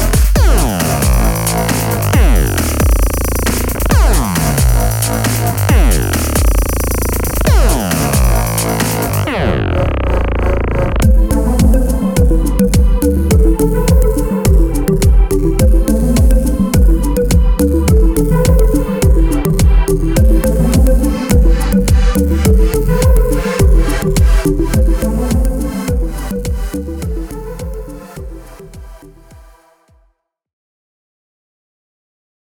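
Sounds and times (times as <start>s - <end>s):
elemental EDM music: 0.0s - 29.8s.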